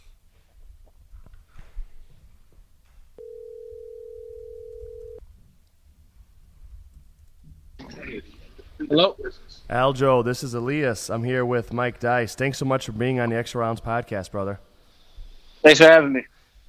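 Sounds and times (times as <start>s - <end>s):
telephone ringback tone from a call ringing out: 3.2s - 5.2s
speech: 8.9s - 14.7s, 15.6s - 16.4s.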